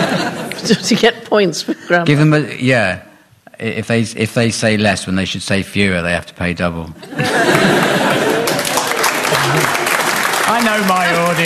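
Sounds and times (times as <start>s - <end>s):
laughter: 0.0s - 1.0s, 7.0s - 11.4s
speech: 0.7s - 8.0s, 9.4s - 9.8s, 10.6s - 11.4s
audience scattered clapping: 7.5s - 11.4s.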